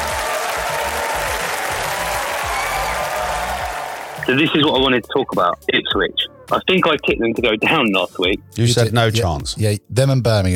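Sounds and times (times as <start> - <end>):
round of applause from a crowd: 0.0 - 5.0
speech: 4.3 - 10.5.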